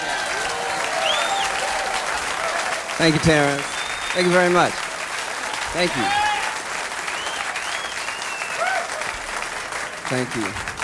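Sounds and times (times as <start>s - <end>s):
audience clapping: 0.0s - 10.8s
faint whistles from the audience: 0.9s - 1.6s, 3.6s - 4.4s, 7.1s - 8.7s
speech: 3.0s - 4.8s, 5.7s - 6.2s, 10.1s - 10.7s.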